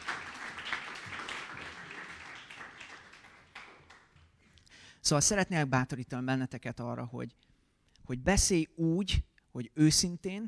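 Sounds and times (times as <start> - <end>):
audience applause: 0.0 - 4.2
speech: 5.0 - 7.5, 8.1 - 10.4.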